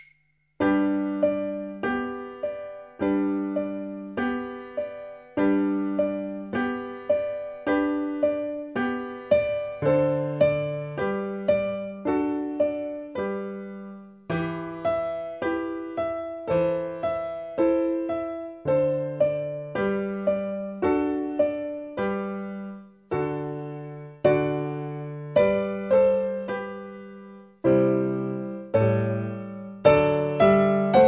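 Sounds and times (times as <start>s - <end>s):
piano: 0.6s - 31.0s.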